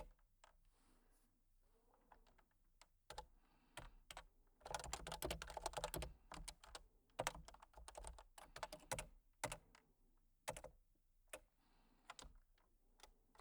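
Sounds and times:
breathing: 0:00.7 - 0:01.2, 0:03.3 - 0:04.1, 0:11.5 - 0:12.3
typing: 0:04.6 - 0:09.6.

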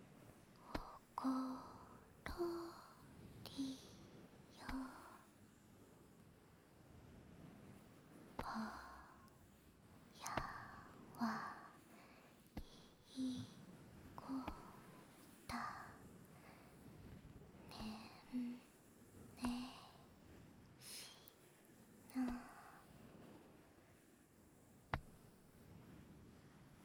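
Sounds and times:
lullaby: 0:00.6 - 0:05.4, 0:10.1 - 0:16.7, 0:17.6 - 0:18.8, 0:19.4 - 0:20.1, 0:22.1 - 0:22.9.

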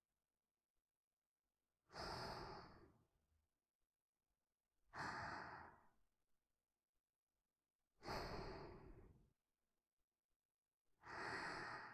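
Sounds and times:
person breathing in sleep: 0:01.9 - 0:03.0, 0:04.9 - 0:06.0, 0:08.0 - 0:09.2, 0:11.0 - 0:11.9.

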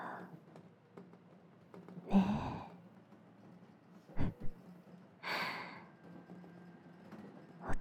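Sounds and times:
sensual breathy sighs: 0:02.1 - 0:02.8, 0:05.2 - 0:05.9.

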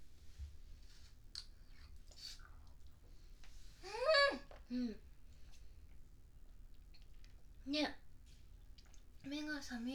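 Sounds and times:
person eating raw custard pudding, soft chewing: 0:00.8 - 0:03.8, 0:04.6 - 0:09.3
speech: 0:04.7 - 0:05.1, 0:07.7 - 0:08.0, 0:09.7 - 0:09.9.

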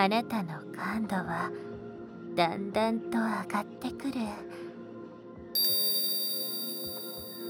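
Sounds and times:
speech: 0:00.0 - 0:01.7, 0:02.4 - 0:04.6
hypnosis bell struck: 0:05.6 - 0:07.4.

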